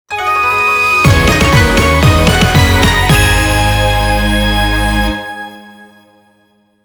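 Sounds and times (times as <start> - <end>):
ending jingle: 0.1 - 5.6.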